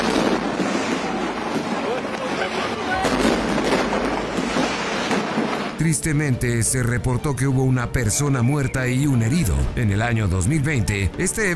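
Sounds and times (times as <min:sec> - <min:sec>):
rocket fireworks exploding: 0:00.0 - 0:05.8
speech: 0:05.8 - 0:11.5.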